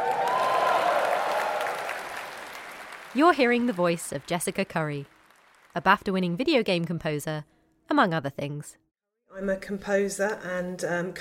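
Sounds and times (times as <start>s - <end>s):
audience whoops: 0.0s - 2.2s
large audience cheering and applauding in concert hall: 0.0s - 6.4s
speech: 3.1s - 5.1s, 5.8s - 11.1s.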